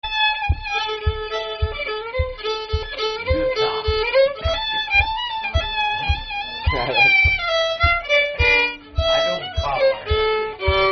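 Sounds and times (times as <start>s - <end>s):
tune in C and A minor: 0.0s - 10.9s.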